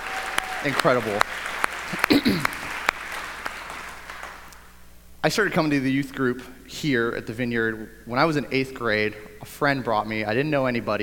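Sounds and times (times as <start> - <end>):
applause: 0.0 - 4.6
speech: 0.6 - 2.6, 5.2 - 11.0.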